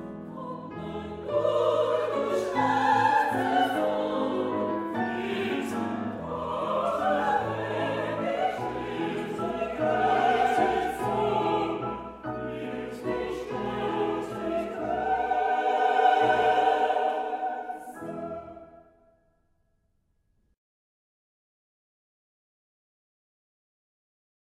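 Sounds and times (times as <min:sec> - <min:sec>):
waltz music: 0:00.0 - 0:19.1.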